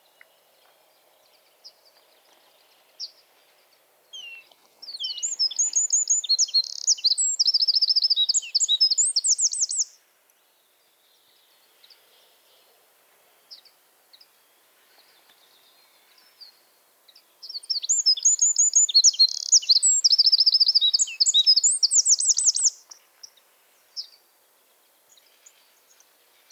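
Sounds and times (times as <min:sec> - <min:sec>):
Eurasian wren song: 0:04.1 - 0:10.0, 0:17.4 - 0:23.4.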